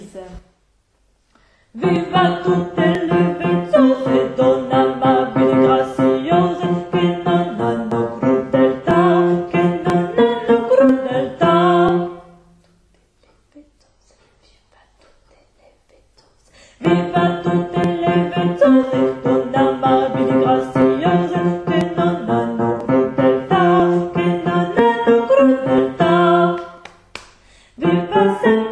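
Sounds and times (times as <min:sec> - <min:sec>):
tenor singing: 0:01.7 - 0:12.4, 0:16.8 - 0:27.0, 0:27.8 - 0:28.7.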